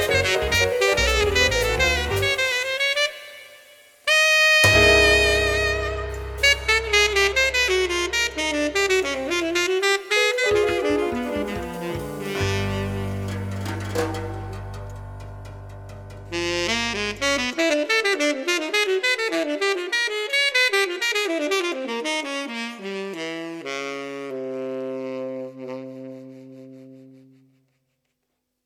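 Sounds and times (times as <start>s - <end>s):
jazz tenor saxophone: 0.0s - 15.0s, 16.2s - 27.7s.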